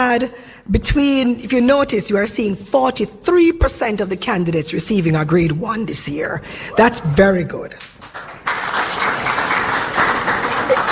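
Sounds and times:
speech: 0.0s - 8.3s
audience clapping: 7.8s - 10.8s.

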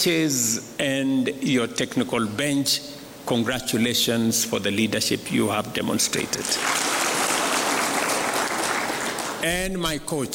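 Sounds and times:
speech: 0.0s - 6.9s, 9.4s - 10.3s
audience applause congratulating a coach, assistant coaches and technical bench: 6.4s - 9.5s.

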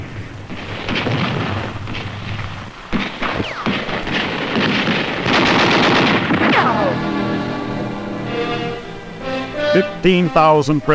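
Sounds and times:
artillery and gunfire barrage: 0.0s - 8.5s
speech: 9.8s - 10.9s.

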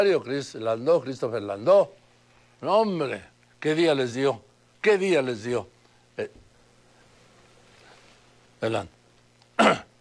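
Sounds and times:
speech: 0.0s - 2.0s, 2.6s - 6.4s, 8.6s - 9.0s, 9.6s - 9.9s
sneeze: 9.6s - 9.9s.

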